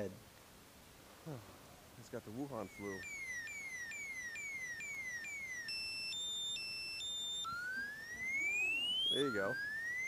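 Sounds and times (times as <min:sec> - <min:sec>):
speech: 0:00.0 - 0:00.3, 0:01.2 - 0:03.2, 0:09.1 - 0:09.7
siren sound effect: 0:02.6 - 0:10.0.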